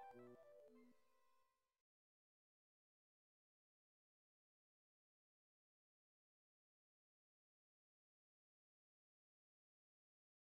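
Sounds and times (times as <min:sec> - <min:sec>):
oboe: 0:00.0 - 0:00.8
recorder: 0:00.0 - 0:00.9.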